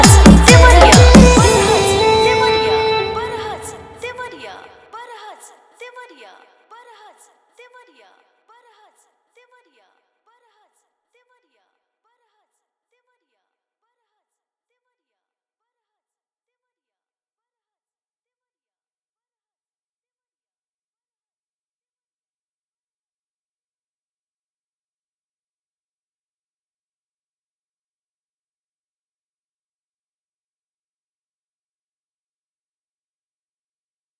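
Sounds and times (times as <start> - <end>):
dholki drumming mix: 0.0 - 3.8.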